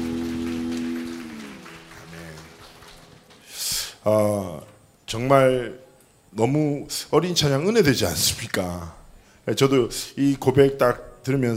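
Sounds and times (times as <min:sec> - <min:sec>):
sustained low keyboard chord: 0:00.0 - 0:02.7
group applause: 0:00.0 - 0:03.9
speech: 0:04.0 - 0:11.5.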